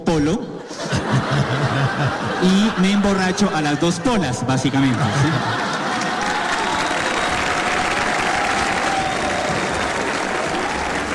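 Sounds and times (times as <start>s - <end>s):
laughter: 0.6s - 7.3s
speech: 1.3s - 5.7s
audience applause: 5.3s - 11.1s.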